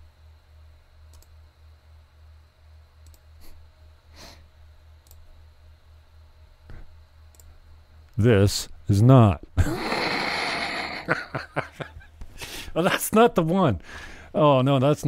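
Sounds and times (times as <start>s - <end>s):
computer mouse clicks: 1.1s - 1.4s, 3.0s - 3.3s, 5.0s - 5.3s, 7.3s - 7.5s
speech: 8.2s - 9.8s, 12.8s - 15.0s
laughter: 10.7s - 12.1s.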